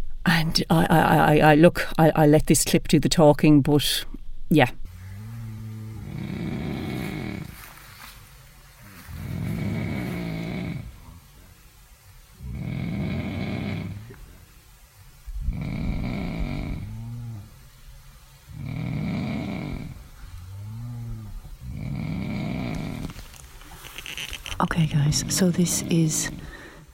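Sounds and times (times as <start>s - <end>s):
speech: 0.4s - 4.8s, 25.2s - 26.5s
person snoring loudly in a tent: 5.1s - 7.6s, 8.8s - 11.2s, 12.4s - 14.2s, 15.4s - 17.5s, 18.6s - 23.2s, 25.0s - 26.9s.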